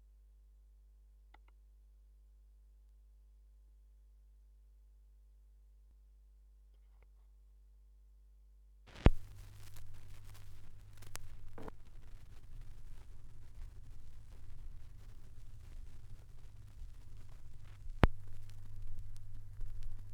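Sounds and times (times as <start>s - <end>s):
vinyl record noise: 8.9s - 20.1s.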